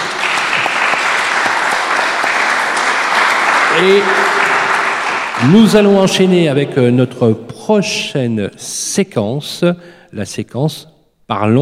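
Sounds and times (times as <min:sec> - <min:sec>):
audience applause: 0:00.0 - 0:06.4
speech: 0:03.8 - 0:04.4, 0:05.4 - 0:11.6.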